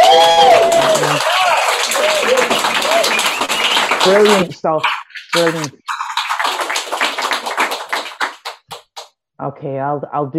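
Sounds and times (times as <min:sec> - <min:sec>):
audience round of applause: 0:00.0 - 0:09.1
speech: 0:04.0 - 0:05.9, 0:09.4 - 0:10.3.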